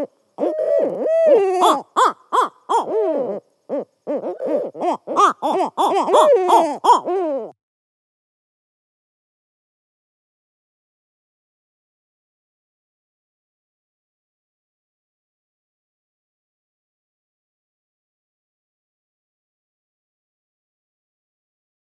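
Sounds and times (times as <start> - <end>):
owl call playback: 0.0 - 7.6.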